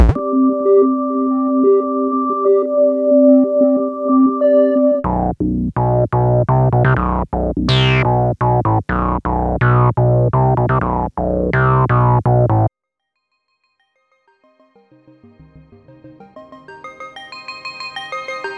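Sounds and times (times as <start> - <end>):
melody: 0.1 - 12.7.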